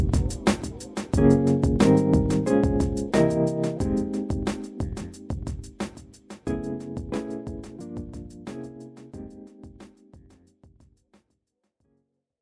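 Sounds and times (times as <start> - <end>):
old school hip hop music: 0.0 - 9.8.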